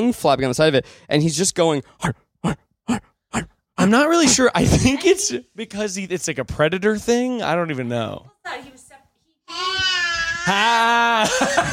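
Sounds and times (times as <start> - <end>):
speech: 0.0 - 8.7, 10.5 - 11.7
toddler babbling: 9.5 - 10.6
toddler yelling and crying: 9.5 - 11.0
laughter: 10.5 - 11.7.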